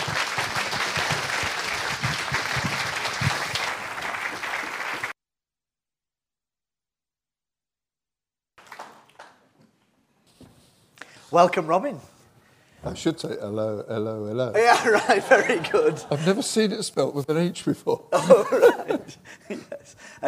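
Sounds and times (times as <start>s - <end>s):
audience applause welcoming a guest and his wife: 0.0s - 5.1s, 8.6s - 9.4s
speech: 11.3s - 12.1s, 12.8s - 20.2s
laughter: 14.6s - 16.9s, 18.1s - 20.0s.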